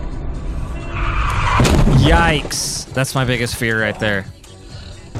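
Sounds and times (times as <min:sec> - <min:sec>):
car skidding: 0:00.5 - 0:02.5
car crashing: 0:00.6 - 0:02.9
speech: 0:02.1 - 0:04.3.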